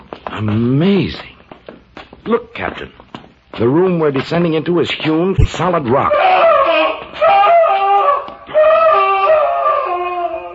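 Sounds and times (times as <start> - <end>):
speech: 0.4 - 1.4, 2.3 - 3.0, 3.6 - 6.4
man screaming in agony: 6.0 - 10.5.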